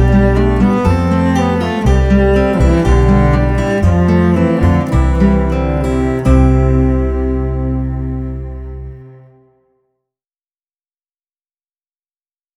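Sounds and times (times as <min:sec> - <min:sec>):
instrumental music: 0:00.0 - 0:09.7.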